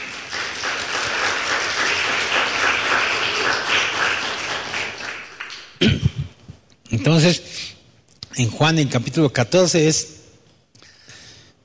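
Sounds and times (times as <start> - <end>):
audience applause: 0.0 - 5.8
speech: 7.0 - 7.6, 8.4 - 10.2.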